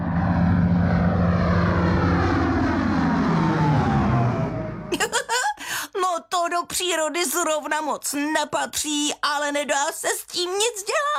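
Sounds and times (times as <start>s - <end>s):
airplane flying overhead: 0.0s - 5.1s
speech: 6.6s - 11.1s.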